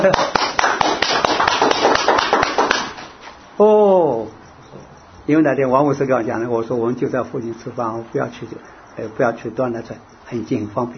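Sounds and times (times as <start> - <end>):
speech: 0.0 - 0.4, 5.3 - 10.9
group of people clapping: 0.0 - 3.2.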